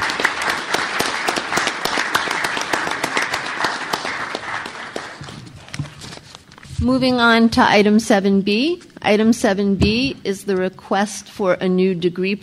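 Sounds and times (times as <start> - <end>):
audience applause: 0.0 - 5.8
speech: 6.8 - 12.4.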